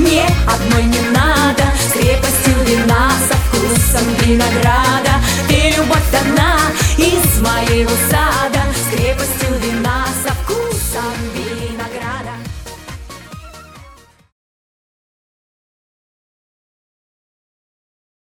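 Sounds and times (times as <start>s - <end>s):
singing: 0.0s - 12.5s.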